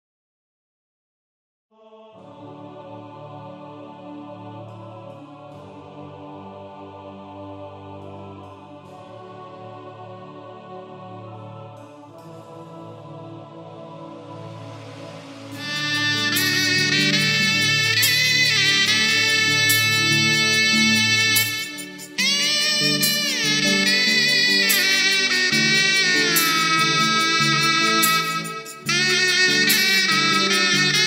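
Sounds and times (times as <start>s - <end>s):
shehnai playing a national anthem: 15.5s - 31.0s.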